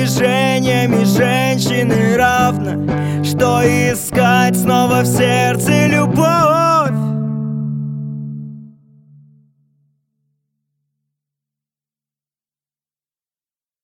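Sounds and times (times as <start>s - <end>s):
drumless backing track: 0.0s - 7.8s.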